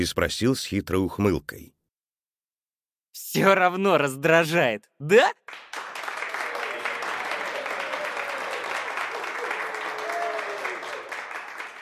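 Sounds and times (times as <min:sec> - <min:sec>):
speech: 0:00.0 - 0:01.8, 0:03.2 - 0:05.8
audience applause in a theater hall: 0:05.5 - 0:11.7.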